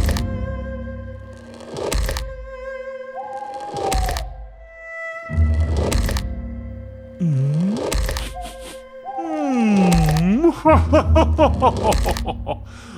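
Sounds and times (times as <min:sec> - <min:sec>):
loud approaching monster footsteps: 0:00.0 - 0:00.5, 0:01.4 - 0:02.6, 0:03.5 - 0:04.6, 0:05.4 - 0:06.6, 0:07.3 - 0:08.8, 0:09.8 - 0:10.6, 0:11.4 - 0:12.7
laughter: 0:09.8 - 0:12.9
speech: 0:10.6 - 0:12.9.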